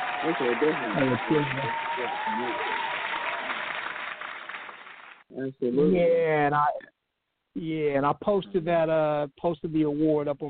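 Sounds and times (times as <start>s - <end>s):
people cheering: 0.0s - 4.9s
crowd applause: 0.0s - 5.2s
speech: 0.2s - 2.8s, 5.3s - 6.9s, 7.6s - 10.4s.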